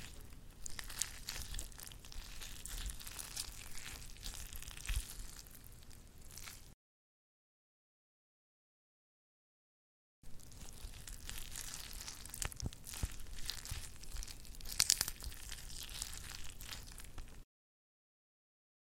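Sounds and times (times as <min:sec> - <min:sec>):
squishing sounds: 0:00.0 - 0:06.8, 0:10.3 - 0:17.4.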